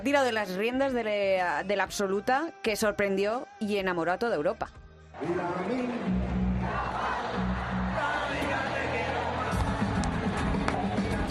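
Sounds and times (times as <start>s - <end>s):
speech: 0.0s - 6.2s
group chanting a football anthem: 5.2s - 11.2s.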